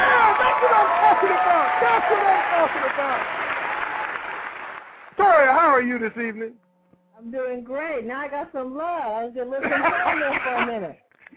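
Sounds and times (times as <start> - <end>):
audience applause: 0.0 - 5.1
speech: 0.8 - 3.5, 5.2 - 6.6, 7.2 - 11.0
laughter: 9.6 - 11.3.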